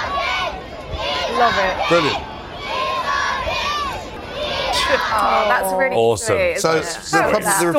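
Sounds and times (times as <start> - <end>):
primary school children cheering and shouting to greet the king: 0.0 - 5.5
speech: 1.4 - 2.3, 4.9 - 7.7.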